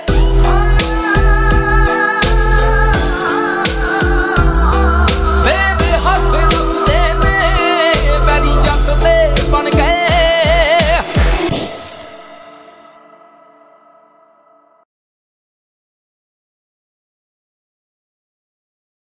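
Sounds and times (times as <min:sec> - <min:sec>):
Punjabi song: 0:00.0 - 0:14.8.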